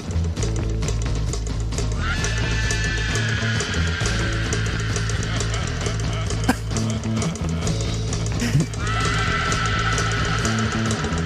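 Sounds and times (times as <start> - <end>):
bass and drums: 0.0 - 11.2
rock song: 0.0 - 11.2
screams: 2.0 - 6.8, 8.4 - 11.2
creepy laughter: 2.0 - 11.2.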